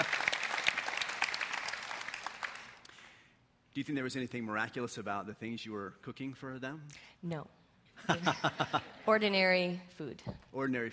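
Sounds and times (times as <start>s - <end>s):
audience applauding: 0.0s - 2.9s
speech: 3.8s - 10.9s
laughter: 8.0s - 9.2s.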